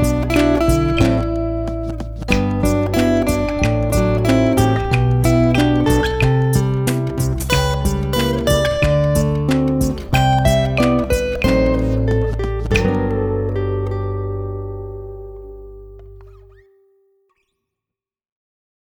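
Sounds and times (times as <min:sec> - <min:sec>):
instrumental children's song: 0:00.0 - 0:13.5.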